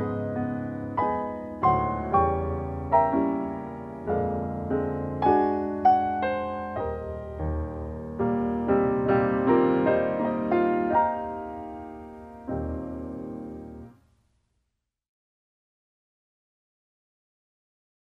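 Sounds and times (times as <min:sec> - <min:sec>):
piano music: 0:00.0 - 0:14.0.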